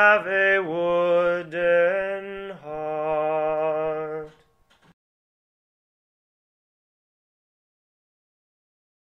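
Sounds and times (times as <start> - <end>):
singing voice only: 0.0 - 4.6.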